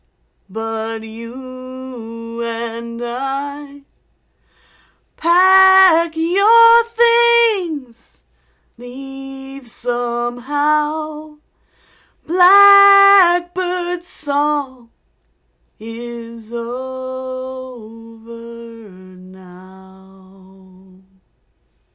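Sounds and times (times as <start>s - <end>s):
woman singing a song cover: 0.5s - 3.9s, 5.2s - 8.2s, 8.8s - 11.4s, 12.2s - 14.9s, 15.8s - 21.2s.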